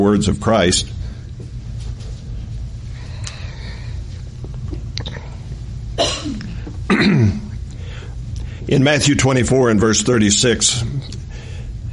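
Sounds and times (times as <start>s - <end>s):
speech: 0.0s - 1.0s, 7.0s - 7.4s, 8.7s - 11.2s
steady rumble: 0.0s - 11.9s
person coughing after a drink of water: 6.0s - 7.6s.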